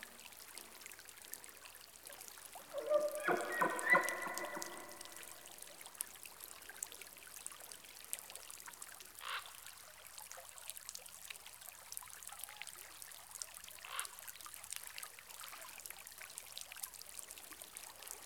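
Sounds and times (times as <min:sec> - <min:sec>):
elk in rainforest: 0:02.6 - 0:05.7.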